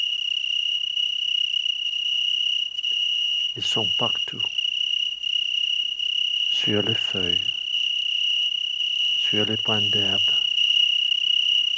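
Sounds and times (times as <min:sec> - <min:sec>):
tens of thousands of grasshoppers stridulating: 0:00.0 - 0:11.7
speech: 0:03.6 - 0:04.6, 0:06.6 - 0:07.6, 0:09.3 - 0:10.4.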